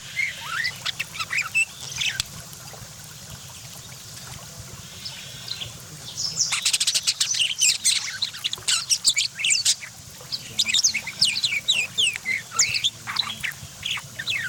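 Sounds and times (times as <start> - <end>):
parakeet chattering warbling song: 0.0 - 2.2, 5.0 - 14.4.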